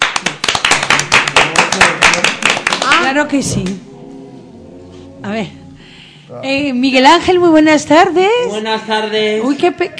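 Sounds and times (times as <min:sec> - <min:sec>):
audience applause: 0:00.0 - 0:03.1
speech: 0:03.1 - 0:03.9, 0:05.2 - 0:05.6, 0:06.3 - 0:09.9.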